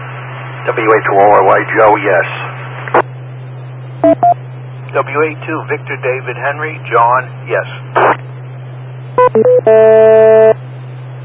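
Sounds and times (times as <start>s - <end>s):
speech: 0.7s - 2.5s, 4.9s - 8.2s, 9.3s - 10.4s
radio net beep tones: 4.0s - 4.4s, 9.2s - 10.6s.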